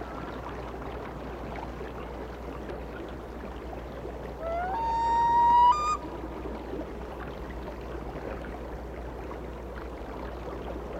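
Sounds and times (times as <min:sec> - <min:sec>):
loon wail: 0:04.4 - 0:06.0.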